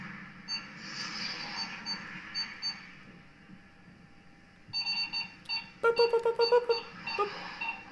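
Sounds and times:
electronic beeps from the Snake video game: 4.8 - 7.8.

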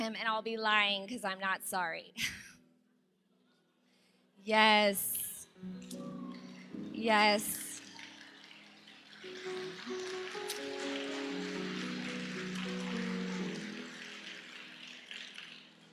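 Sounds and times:
speech: 0.0 - 2.5, 4.4 - 6.0, 7.0 - 7.6
audience clapping: 5.9 - 15.9.

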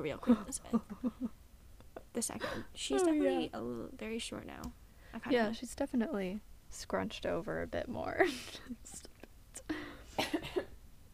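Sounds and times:
speech: 0.0 - 1.4, 2.1 - 9.7
person coughing after inhaling saliva: 10.1 - 10.8.

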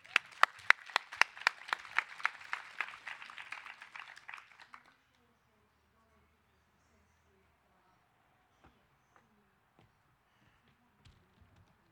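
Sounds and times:
audience applause for poets: 0.0 - 5.0.

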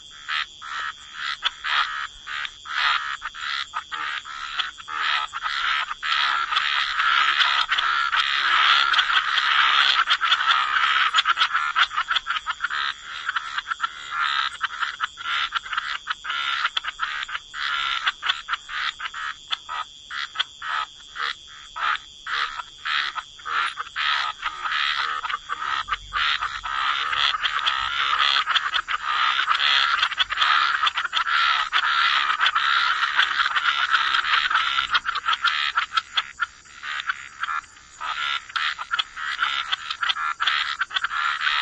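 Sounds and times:
chorus of frogs croaking: 0.0 - 41.6.

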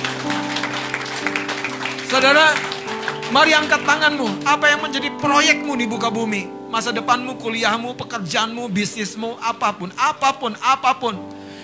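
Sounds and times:
crowd clapping: 0.0 - 5.2
sustained musical tones: 0.0 - 8.1
speech: 2.1 - 2.7, 3.3 - 11.4.

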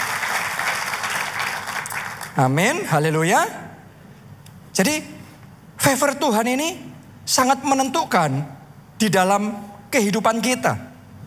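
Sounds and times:
audience applause: 0.0 - 2.4
speech: 2.4 - 3.6, 4.8 - 5.2, 5.8 - 10.9.

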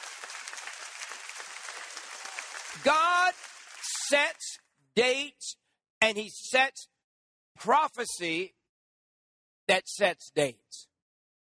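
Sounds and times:
audience applause: 0.0 - 4.4
speech: 2.8 - 3.5, 4.1 - 6.9, 7.6 - 8.6, 9.7 - 10.9.

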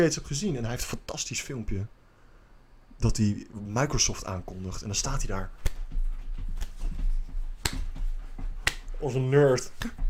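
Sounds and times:
speech: 0.0 - 2.0, 3.0 - 6.0, 9.0 - 10.0
slow awkward hand claps: 5.6 - 5.9, 6.6 - 6.8, 7.6 - 8.0, 8.6 - 9.0, 9.8 - 10.0.

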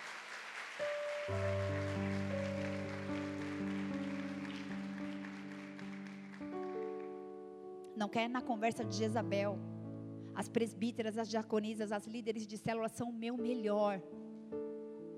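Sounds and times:
audience applause: 0.0 - 7.1
speech: 1.3 - 1.6, 8.0 - 9.7, 10.4 - 14.2.

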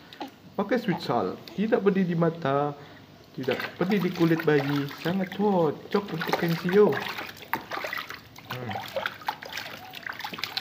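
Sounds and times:
speech: 0.6 - 7.4
water trickling while bathing a baby: 3.4 - 10.6.

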